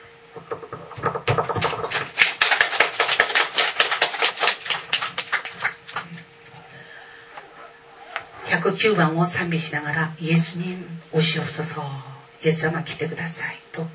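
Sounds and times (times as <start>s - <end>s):
speech: 0.5s - 1.1s, 8.6s - 13.9s
audience clapping hands: 1.2s - 6.6s.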